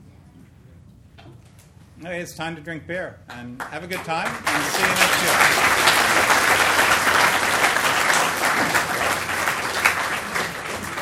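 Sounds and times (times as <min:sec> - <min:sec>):
speech: 0:02.0 - 0:06.4
audience applause: 0:03.6 - 0:11.0.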